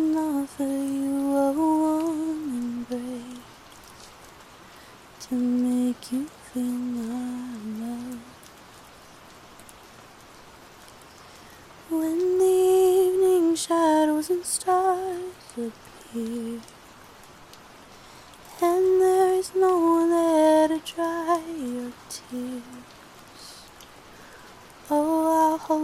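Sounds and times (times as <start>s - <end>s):
soft singing: 0.0s - 3.6s, 5.2s - 8.5s, 11.8s - 16.8s, 18.4s - 23.8s, 24.8s - 25.8s
rain: 0.0s - 25.8s.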